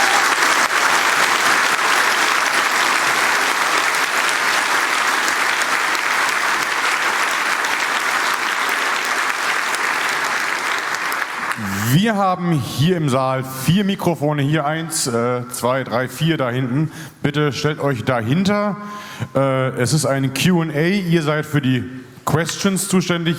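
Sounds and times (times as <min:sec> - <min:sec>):
audience applause: 0:00.0 - 0:11.8
speech: 0:12.1 - 0:23.3.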